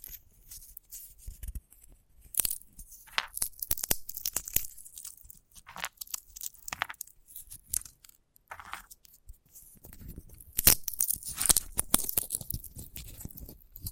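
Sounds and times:
dry crackling and tearing from handling a sunflower head: 0:02.2 - 0:08.2, 0:09.9 - 0:13.9.

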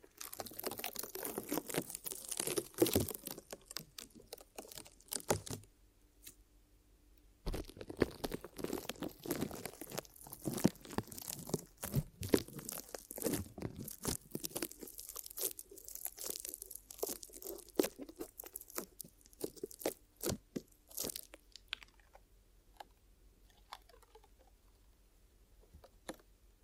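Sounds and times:
ear massage crinkling and crunching: 0:00.0 - 0:05.7, 0:07.4 - 0:24.8, 0:25.6 - 0:26.3.

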